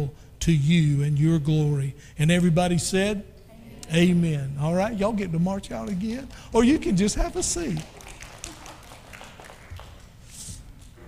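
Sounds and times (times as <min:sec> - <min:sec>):
speech: 0:00.0 - 0:03.3, 0:03.9 - 0:08.0
hesitant audience clapping: 0:05.7 - 0:10.6.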